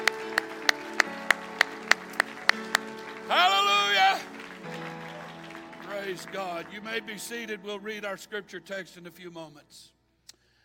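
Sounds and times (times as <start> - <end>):
audience clapping hands in a steady beat: 0.0 - 7.6
speech: 6.2 - 10.0.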